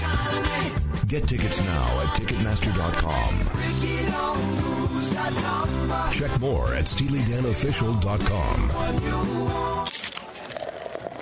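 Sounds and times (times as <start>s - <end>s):
speech: 1.1s - 10.0s
Coors Light beer being poured: 9.8s - 11.2s.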